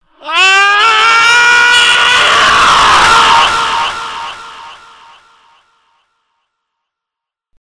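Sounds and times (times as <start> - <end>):
person screaming: 0.1 - 5.3.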